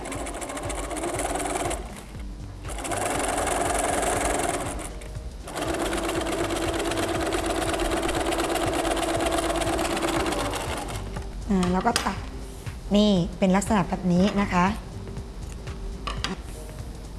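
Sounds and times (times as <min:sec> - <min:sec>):
sewing machine stitching a narrow fabric tie strap: 0:00.0 - 0:02.1, 0:02.7 - 0:11.1
speech: 0:11.8 - 0:12.2, 0:12.9 - 0:14.8.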